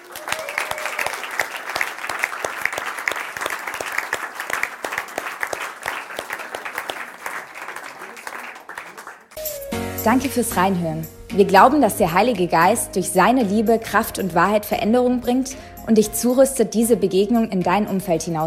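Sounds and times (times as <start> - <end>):
audience applause: 0.0 - 9.4
speech: 10.0 - 18.4.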